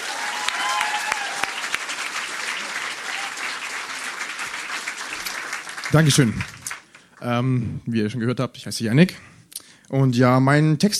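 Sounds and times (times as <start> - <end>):
audience applause: 0.0 - 7.2
speech: 5.9 - 6.6, 7.2 - 9.3, 9.9 - 10.9.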